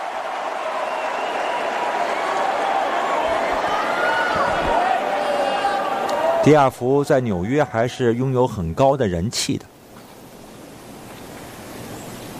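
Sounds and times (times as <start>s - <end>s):
stadium crowd cheering and applauding a player: 0.0s - 6.5s
speech: 6.4s - 9.7s.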